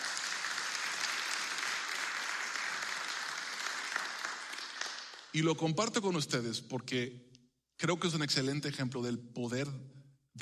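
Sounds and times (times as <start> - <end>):
audience applause: 0.0 - 5.4
speech: 5.4 - 10.4.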